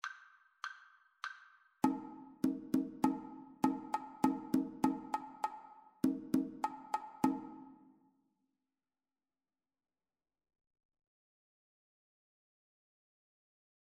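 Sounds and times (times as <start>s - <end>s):
two-part rhythm: 1.8s - 7.8s.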